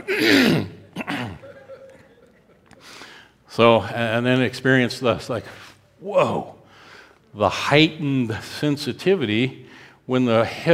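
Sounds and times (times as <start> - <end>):
man clearing his throat: 0.0 - 2.0
laughter: 0.7 - 3.0
speech: 3.6 - 6.6, 7.4 - 10.7.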